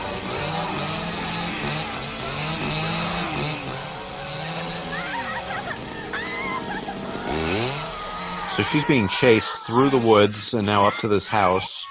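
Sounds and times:
chainsaw running: 0.0 - 9.4
laughter: 3.0 - 11.8
speech: 8.6 - 11.8.

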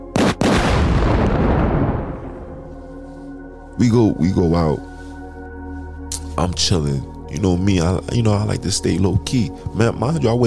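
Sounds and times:
bomb explosion: 0.2 - 2.7
speech: 3.8 - 4.9, 6.4 - 10.4.

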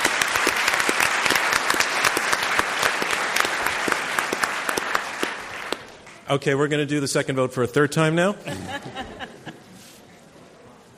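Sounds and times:
crowd applause: 0.0 - 6.1
speech: 6.3 - 9.3
laughter: 8.4 - 10.1.

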